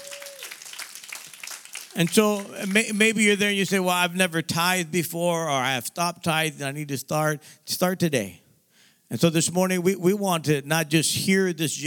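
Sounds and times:
audience clapping: 0:00.0 - 0:03.6
speech: 0:02.0 - 0:08.4, 0:09.1 - 0:11.8.

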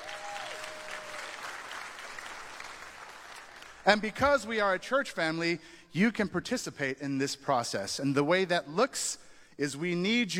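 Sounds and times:
audience cheering: 0:00.0 - 0:03.6
speech: 0:03.9 - 0:10.3.

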